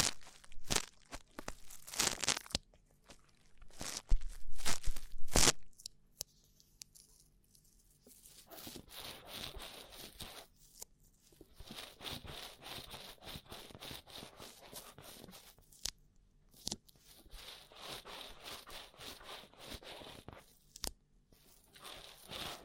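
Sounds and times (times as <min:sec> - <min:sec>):
rough ear cleaning scratching and crackling: 0:00.0 - 0:02.5, 0:03.6 - 0:05.6, 0:08.1 - 0:10.5, 0:11.3 - 0:15.8, 0:16.6 - 0:22.6.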